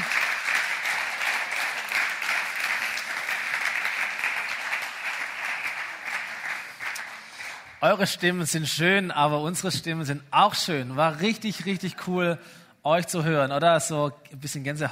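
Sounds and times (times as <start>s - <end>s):
audience applause for the band: 0.0s - 7.8s
speech: 7.8s - 14.9s.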